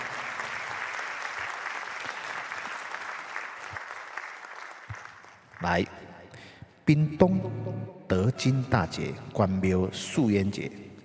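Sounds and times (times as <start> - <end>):
audience applause: 0.0 - 5.8
speech: 5.6 - 6.1, 6.9 - 10.8.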